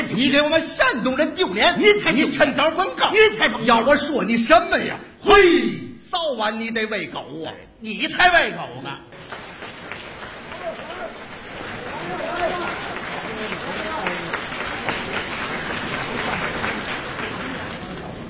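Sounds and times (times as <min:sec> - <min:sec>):
speech: 0:00.2 - 0:09.4
audience applause after crosstalk comedy routine: 0:09.1 - 0:18.2.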